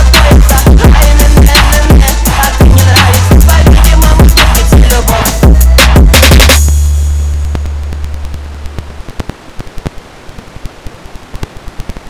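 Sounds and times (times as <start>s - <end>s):
phonk music: 0.0s - 8.8s.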